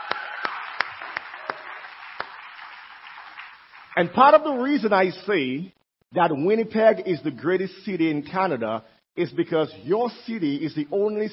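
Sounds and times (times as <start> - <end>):
audience applause: 0.0 - 4.2
speech: 4.0 - 11.3.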